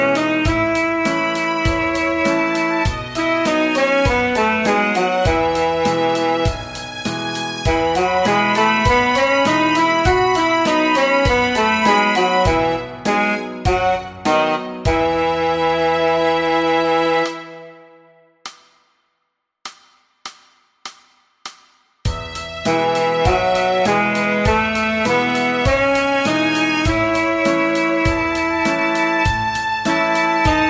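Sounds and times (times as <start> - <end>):
saxophone playing a Db scale in quarter notes: 0.0 - 7.0, 7.6 - 17.9, 22.1 - 30.6.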